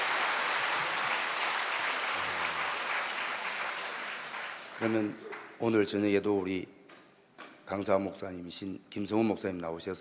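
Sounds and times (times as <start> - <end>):
crowd applauding: 0.0 - 5.6
speech: 4.8 - 6.8, 7.7 - 9.9.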